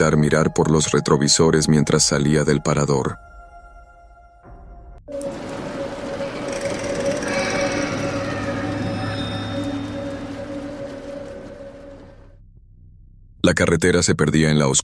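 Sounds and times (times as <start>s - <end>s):
speech: 0.0s - 3.3s, 13.4s - 14.8s
truck engine running: 5.1s - 13.3s.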